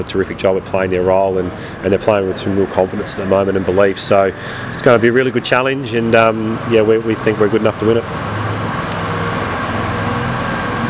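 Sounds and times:
speech: 0.0 - 8.4
small car passing by: 8.1 - 10.8.

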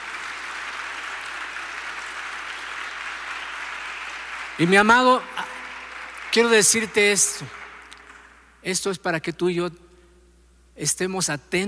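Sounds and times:
audience applause: 0.0 - 8.5
speech: 4.6 - 5.5, 6.3 - 7.6, 8.6 - 9.8, 10.8 - 11.6.

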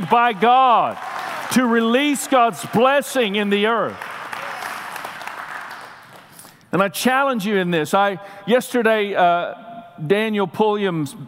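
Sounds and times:
speech: 0.0 - 4.1, 6.7 - 11.2
audience clapping: 0.0 - 6.6.

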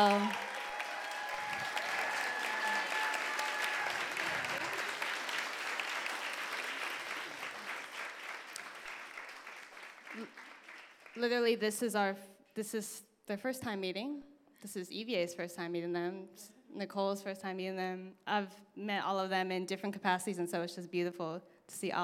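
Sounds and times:
audience applause: 0.0 - 11.2
speech: 11.2 - 22.0.

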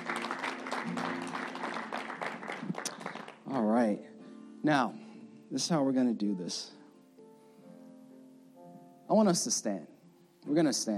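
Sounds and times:
audience clapping: 0.0 - 3.6
speech: 3.8 - 6.8, 9.1 - 10.9.

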